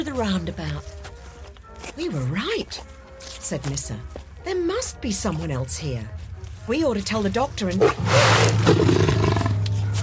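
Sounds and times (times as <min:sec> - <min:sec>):
speech: 0:00.0 - 0:01.0, 0:02.0 - 0:09.0
big cat roar: 0:07.8 - 0:09.7.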